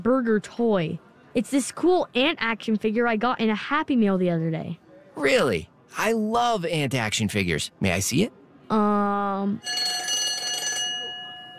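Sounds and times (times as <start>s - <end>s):
speech: 0.0s - 10.2s
school bell ringing: 9.6s - 11.5s.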